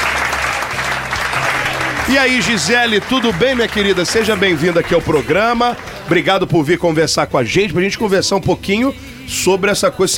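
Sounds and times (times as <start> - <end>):
audience applause: 0.0 - 6.6
speech: 2.1 - 10.1.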